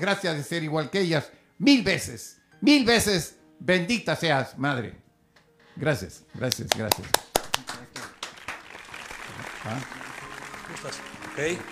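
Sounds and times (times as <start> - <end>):
speech: 0.0 - 5.0, 5.8 - 7.3, 9.6 - 10.0, 10.7 - 11.7
audience applause: 6.7 - 11.7.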